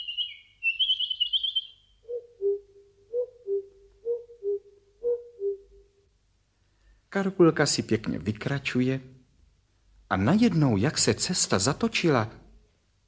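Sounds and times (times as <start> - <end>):
birds singing in a forest: 0.0 - 5.7
speech: 7.1 - 9.2, 10.1 - 12.4.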